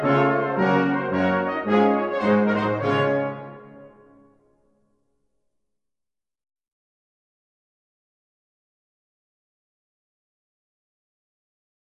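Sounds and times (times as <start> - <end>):
fanfare: 0.0 - 4.4.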